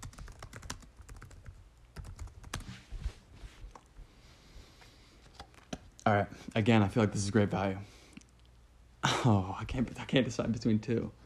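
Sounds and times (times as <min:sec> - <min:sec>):
typing on a computer keyboard: 0:00.0 - 0:02.7
speech: 0:06.1 - 0:08.0, 0:09.2 - 0:11.2.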